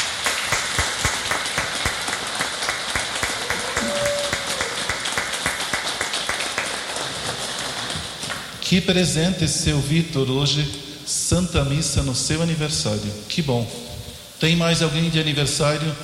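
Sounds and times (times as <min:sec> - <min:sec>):
round of applause: 0:00.0 - 0:08.6
speech: 0:08.7 - 0:13.8, 0:14.4 - 0:16.0.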